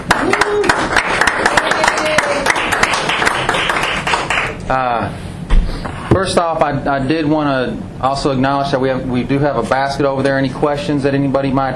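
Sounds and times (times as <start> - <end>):
audience applause: 0.0 - 4.6
speech: 6.2 - 11.7.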